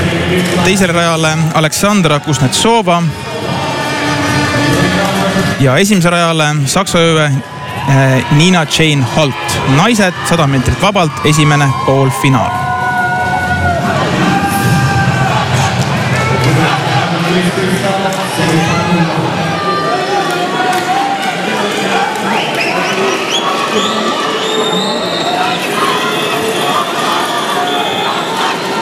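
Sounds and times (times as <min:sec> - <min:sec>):
French stadium crowd cheering: 0:00.0 - 0:28.8
speech: 0:00.3 - 0:03.5, 0:05.6 - 0:12.6.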